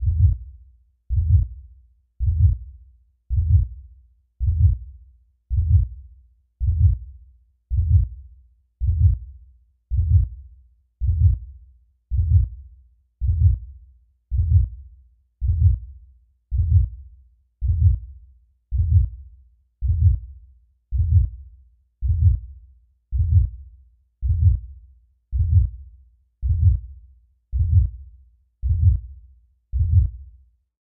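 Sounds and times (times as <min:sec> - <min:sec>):
heartbeat: 0:00.0 - 0:00.4, 0:01.1 - 0:01.5, 0:02.2 - 0:02.6, 0:03.3 - 0:03.7, 0:04.4 - 0:04.8, 0:05.5 - 0:05.9, 0:06.6 - 0:07.0, 0:07.7 - 0:08.1, 0:08.8 - 0:09.2, 0:09.9 - 0:10.4, 0:11.0 - 0:11.4, 0:12.1 - 0:12.6, 0:13.2 - 0:13.6, 0:14.3 - 0:14.8, 0:15.4 - 0:15.9, 0:16.5 - 0:17.0, 0:17.6 - 0:18.1, 0:18.7 - 0:19.2, 0:19.8 - 0:20.2, 0:20.9 - 0:21.4, 0:22.0 - 0:22.4, 0:23.1 - 0:23.6, 0:24.2 - 0:24.7, 0:25.3 - 0:25.8, 0:26.4 - 0:26.9, 0:27.5 - 0:28.0, 0:28.6 - 0:29.1, 0:29.7 - 0:30.2.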